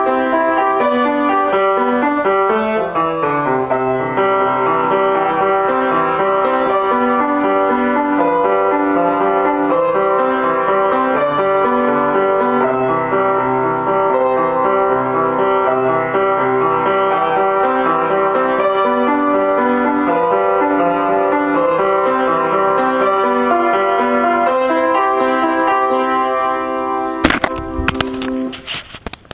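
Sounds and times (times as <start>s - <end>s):
melody: 0.0s - 28.6s.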